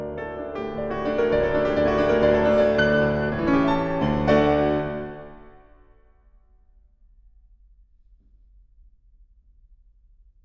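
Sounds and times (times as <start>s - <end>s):
piano piece in D major: 0.0s - 6.0s.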